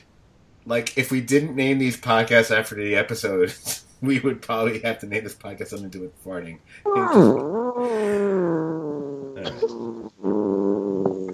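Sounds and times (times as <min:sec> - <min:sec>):
speech: 0:00.7 - 0:08.7
person imitating a cat yowling: 0:06.9 - 0:11.3.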